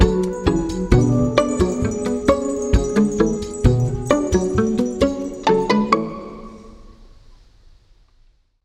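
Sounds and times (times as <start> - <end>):
plucky synth: 0.2 - 6.4.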